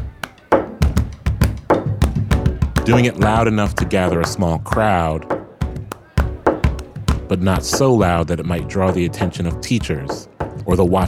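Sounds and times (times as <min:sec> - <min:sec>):
hands beating on a lunch table: 0:00.0 - 0:08.0
speech: 0:02.9 - 0:05.4, 0:07.3 - 0:11.0.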